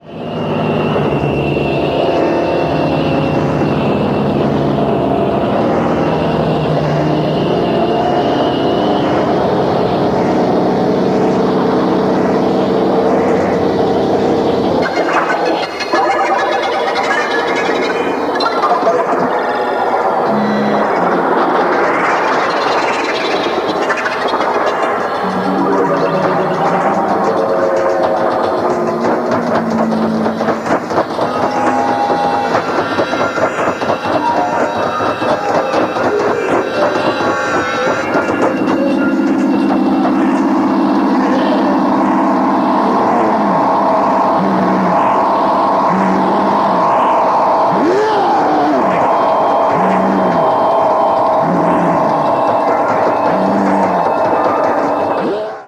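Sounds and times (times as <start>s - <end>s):
electrostatic sound: 0.0s - 55.6s.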